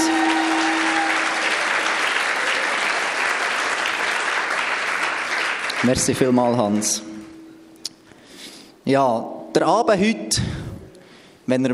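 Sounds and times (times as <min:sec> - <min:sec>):
audience applause: 0:00.0 - 0:06.1
speech: 0:05.8 - 0:07.1, 0:08.9 - 0:10.6, 0:11.5 - 0:11.7.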